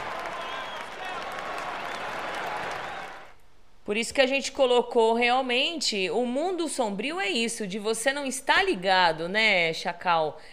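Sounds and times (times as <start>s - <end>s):
round of applause: 0.0s - 3.4s
speech: 3.9s - 10.5s.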